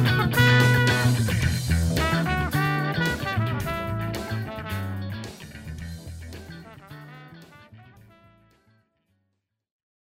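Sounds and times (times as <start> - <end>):
solo trumpet playing a blues solo in E: 0.0 - 5.2, 6.5 - 8.7.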